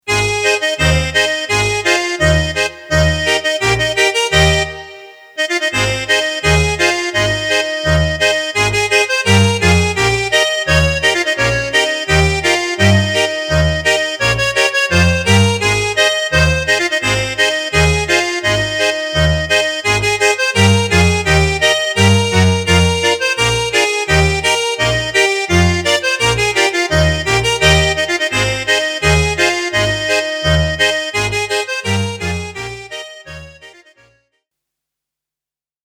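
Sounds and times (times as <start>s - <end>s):
person blowing a bass instrument: 0.0s - 34.1s.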